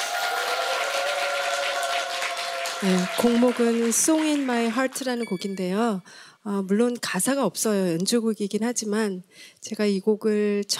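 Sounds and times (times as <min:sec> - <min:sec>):
audience applause welcoming musicians: 0:00.0 - 0:05.2
speech: 0:02.8 - 0:10.7.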